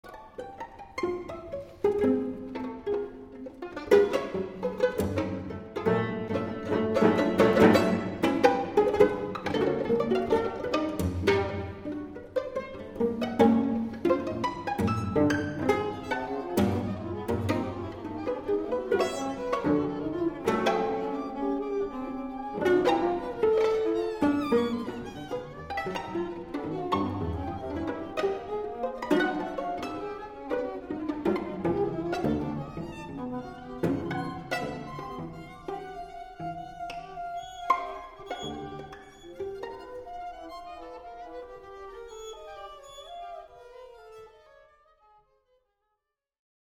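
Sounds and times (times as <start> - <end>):
string quartet: 0.0 - 45.2.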